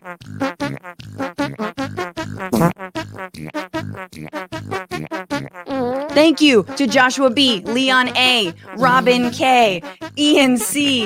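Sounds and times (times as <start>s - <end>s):
fart song: 0.0s - 11.0s
speech: 6.2s - 11.0s.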